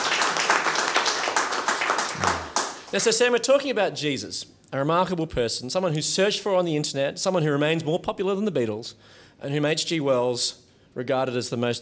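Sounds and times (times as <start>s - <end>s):
audience applause: 0.0s - 3.0s
speech: 2.9s - 11.7s.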